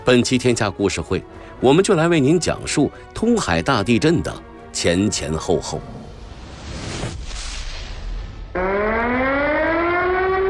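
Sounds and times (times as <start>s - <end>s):
speech: 0.0s - 6.0s
short urgent alarm siren: 8.5s - 10.4s.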